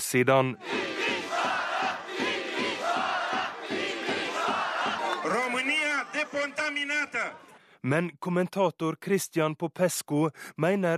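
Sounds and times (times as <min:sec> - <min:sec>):
speech: 0:00.1 - 0:00.7, 0:06.3 - 0:10.9
large crowd of street demonstrators chanting in unison: 0:00.5 - 0:07.6.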